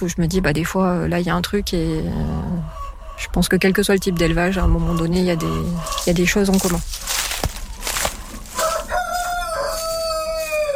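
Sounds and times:
speech: 0:00.0 - 0:07.1
rustling noise: 0:05.4 - 0:10.7
rooster crowing: 0:08.2 - 0:10.7.

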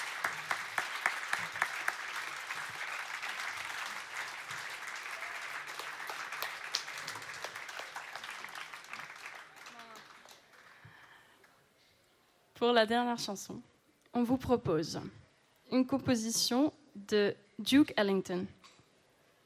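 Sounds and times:
audience applause: 0:00.0 - 0:11.6
speech: 0:12.6 - 0:18.6.

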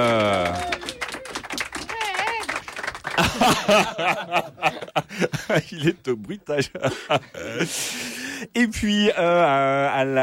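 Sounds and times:
audience applause: 0:00.0 - 0:04.6
laughter: 0:03.1 - 0:07.8
speech: 0:03.7 - 0:10.2.

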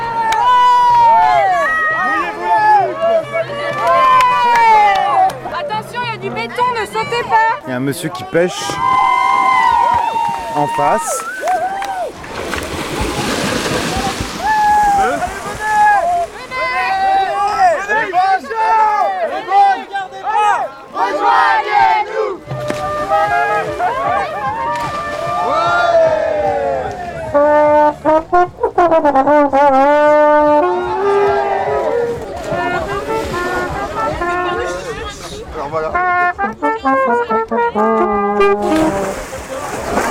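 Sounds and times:
many overlapping lively voices and cries of bathers: 0:00.0 - 0:12.2, 0:14.0 - 0:27.4, 0:30.6 - 0:40.0
speech: 0:07.0 - 0:09.0, 0:10.6 - 0:11.3
about thirty bathers splashing in water: 0:08.5 - 0:17.9, 0:22.4 - 0:29.0, 0:29.8 - 0:36.4, 0:38.2 - 0:40.0.

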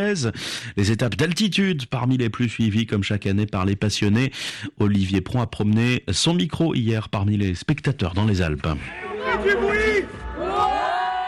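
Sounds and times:
speech: 0:00.0 - 0:09.6
children shouting excitedly awaiting the race: 0:08.9 - 0:11.2.

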